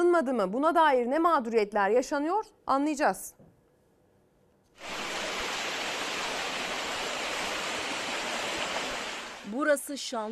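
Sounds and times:
speech: 0:00.2 - 0:03.4, 0:04.8 - 0:05.0, 0:09.5 - 0:10.3
rushing floodwater after heavy rain in Bozova Sanliurfa: 0:04.8 - 0:09.6.

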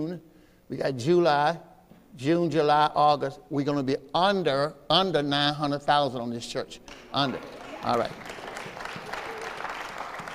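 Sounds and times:
speech: 0:00.0 - 0:08.4
audience applause: 0:06.9 - 0:10.3.

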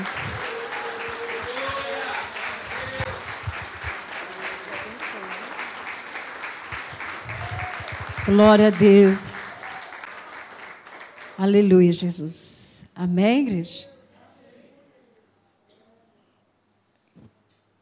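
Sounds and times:
audience applause: 0:00.0 - 0:11.6
speech: 0:08.3 - 0:09.2, 0:11.4 - 0:12.4, 0:13.0 - 0:13.9.

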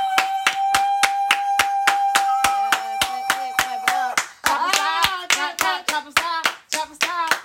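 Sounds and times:
excited vocal whoops from the audience: 0:00.0 - 0:04.2
audience clapping hands in rhythm: 0:00.0 - 0:07.4.

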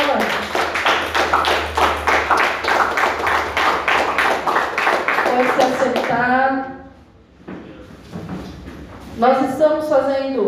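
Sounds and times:
audience clapping: 0:00.0 - 0:06.3
speech: 0:09.8 - 0:10.4.

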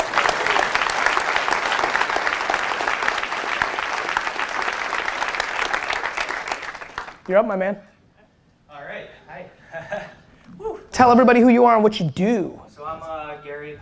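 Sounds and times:
audience applause: 0:00.0 - 0:07.3
speech: 0:07.3 - 0:07.9, 0:09.4 - 0:13.8.

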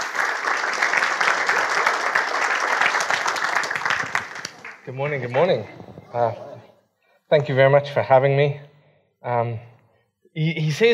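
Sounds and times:
church congregation applauding to welcome the preacher: 0:00.0 - 0:05.9
speech: 0:04.9 - 0:06.5, 0:07.3 - 0:09.7, 0:10.4 - 0:10.9.

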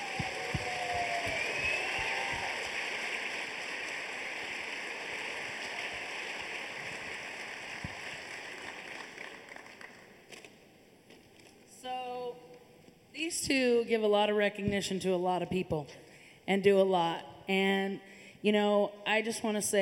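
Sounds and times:
audience applause: 0:00.0 - 0:10.2
speech: 0:13.3 - 0:19.8.

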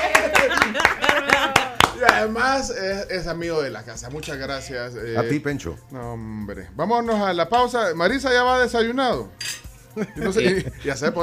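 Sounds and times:
laughter: 0:00.0 - 0:02.4, 0:10.0 - 0:11.1
people clapping: 0:00.0 - 0:02.4
speech: 0:02.2 - 0:11.2.

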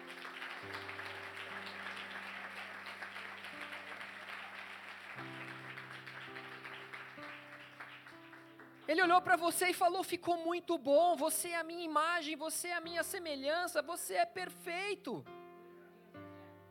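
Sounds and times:
audience applause: 0:00.0 - 0:09.1
speech: 0:08.9 - 0:15.4.

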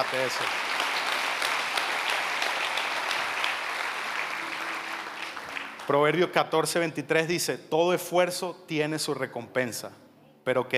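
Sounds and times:
speech: 0:00.0 - 0:00.7, 0:05.9 - 0:10.7
crowd clapping loudly: 0:00.0 - 0:06.4.

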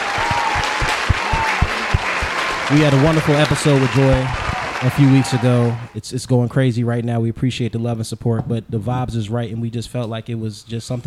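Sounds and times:
round of applause: 0:00.0 - 0:05.9
speech: 0:02.7 - 0:11.0.

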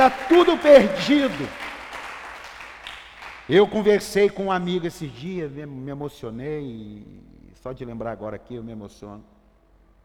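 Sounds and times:
speech: 0:00.0 - 0:01.6, 0:03.5 - 0:09.3
crowd applauding: 0:00.0 - 0:04.3.

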